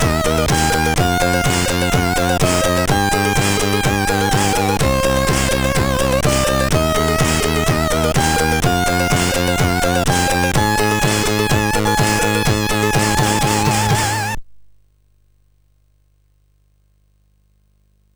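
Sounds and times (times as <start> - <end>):
chiptune music on a MOS6581R3 SID chip: 0.0 - 14.4.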